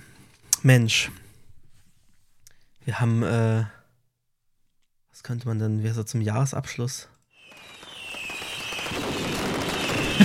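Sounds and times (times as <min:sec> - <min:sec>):
speech: 0:00.6 - 0:01.2, 0:02.9 - 0:03.8, 0:05.2 - 0:07.2
fireworks crackling: 0:07.4 - 0:10.2.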